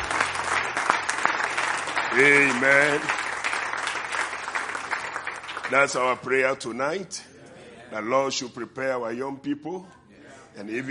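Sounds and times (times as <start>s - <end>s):
church congregation clapping in praise: 0.0s - 6.3s
speech: 2.1s - 3.2s, 5.7s - 7.3s, 7.9s - 10.0s, 10.6s - 10.9s.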